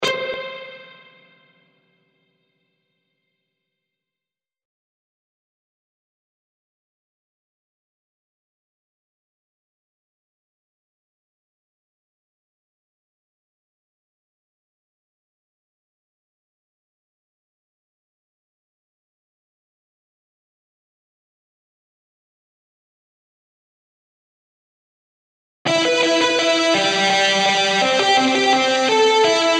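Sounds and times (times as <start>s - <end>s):
guitar: 0.0s - 2.6s, 25.7s - 29.5s.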